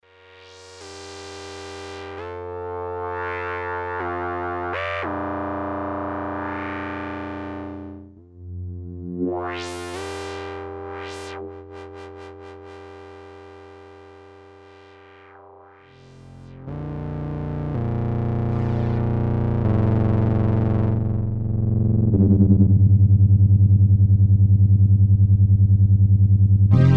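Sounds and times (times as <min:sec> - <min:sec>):
bass synth: 0:04.8 - 0:12.5, 0:15.9 - 0:26.9.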